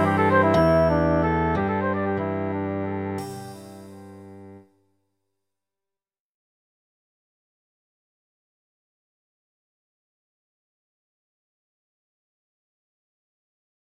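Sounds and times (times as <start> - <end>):
golden ratio melody: 0.0 - 4.6.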